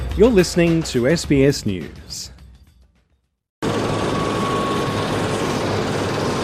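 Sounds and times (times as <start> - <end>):
speech: 0.2 - 2.3
helicopter taking off from an airport on a windswept west coast: 3.7 - 6.4.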